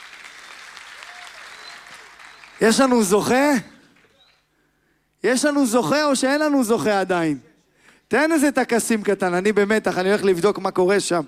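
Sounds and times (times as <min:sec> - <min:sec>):
audience applause at a singing competition: 0:00.0 - 0:04.4
speech: 0:02.6 - 0:03.7, 0:05.2 - 0:07.5, 0:08.1 - 0:11.2.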